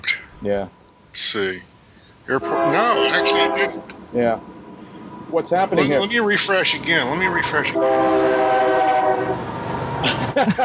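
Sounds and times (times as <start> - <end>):
rumbling hissing drone: 0.0 - 9.3
speech: 0.4 - 1.7, 2.3 - 4.6, 5.3 - 10.6
freight locomotive horn in a hangar: 2.3 - 4.2, 6.7 - 9.4
laughter: 10.0 - 10.6.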